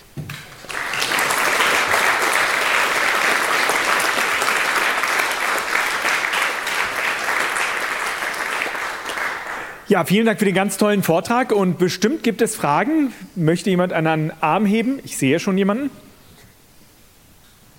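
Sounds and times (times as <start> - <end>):
audience applause after a talk: 0.3 - 9.9
speech: 9.9 - 16.0.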